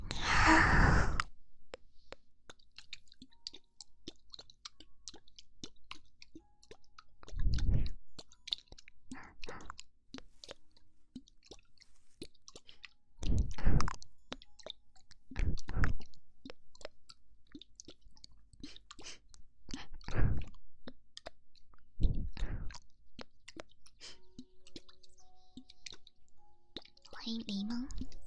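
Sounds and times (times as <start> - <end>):
ear eating mouth sounds: 0.9 - 28.2.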